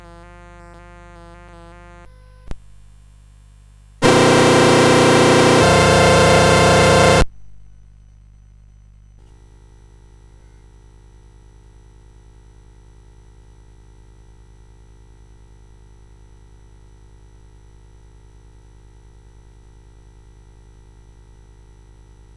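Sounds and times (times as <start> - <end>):
CSG8580R5 chip synthesizer chords: 4.0 - 7.3.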